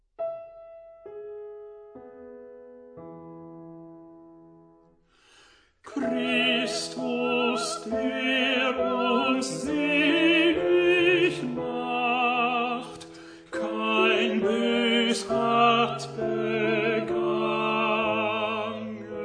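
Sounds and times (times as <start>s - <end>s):
tenor singing: 5.9s - 19.2s.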